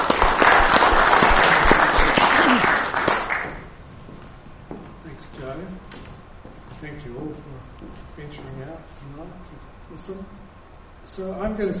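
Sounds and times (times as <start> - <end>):
audience applauding at an evening history talk: 0.0 - 3.8
speech: 8.6 - 10.4, 11.0 - 11.7.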